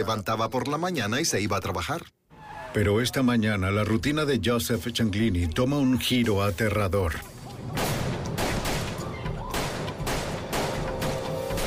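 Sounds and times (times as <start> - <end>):
speech: 0.0 - 7.8
gunfire as four men open fire in South Philadelphia: 7.6 - 11.6.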